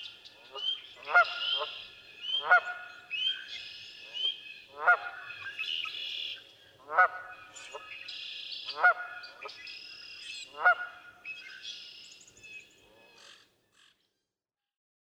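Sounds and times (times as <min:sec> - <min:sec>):
Canada goose calling: 0:00.5 - 0:02.9, 0:04.2 - 0:05.6, 0:06.9 - 0:07.8, 0:10.5 - 0:11.1.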